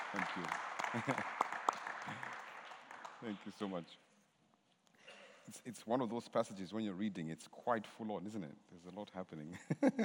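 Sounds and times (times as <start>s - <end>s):
audience applause: 0.0s - 3.5s
speech: 0.1s - 1.4s, 2.0s - 2.4s, 3.2s - 4.0s, 5.5s - 10.0s.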